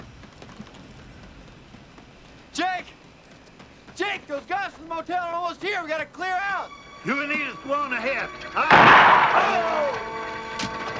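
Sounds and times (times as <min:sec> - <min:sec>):
speech: 0:04.1 - 0:10.1
gunshot in a radio drama: 0:08.7 - 0:09.8.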